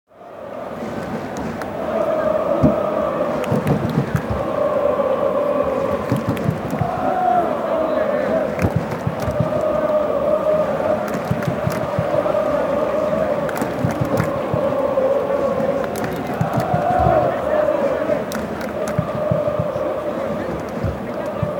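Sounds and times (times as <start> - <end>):
stadium crowd atmosphere: 0.1 - 21.5.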